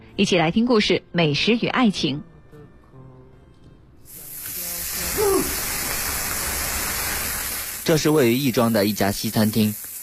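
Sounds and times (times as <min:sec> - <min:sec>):
speech: 0:00.2 - 0:02.3, 0:07.9 - 0:09.9
steak sizzling in a frying pan: 0:04.1 - 0:10.0.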